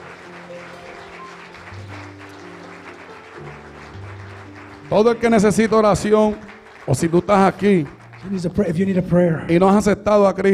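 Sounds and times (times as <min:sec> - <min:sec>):
audience applause: 0:00.0 - 0:09.0
speech: 0:04.9 - 0:10.5.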